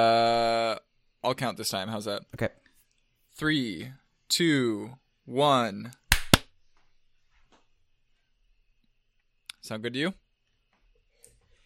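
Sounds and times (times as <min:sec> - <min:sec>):
speech: 0:00.0 - 0:00.2, 0:01.3 - 0:02.6, 0:03.4 - 0:06.0, 0:09.6 - 0:10.2
hand clap for audio sync: 0:06.1 - 0:06.5.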